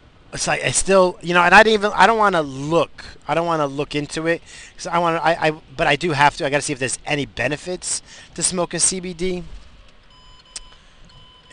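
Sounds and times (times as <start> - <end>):
speech: 0.3 - 9.6
car driver-assist warning tone: 10.1 - 11.5.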